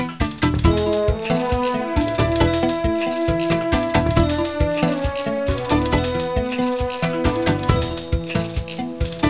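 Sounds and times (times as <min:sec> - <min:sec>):
jazz music ringtone: 0:00.2 - 0:09.2.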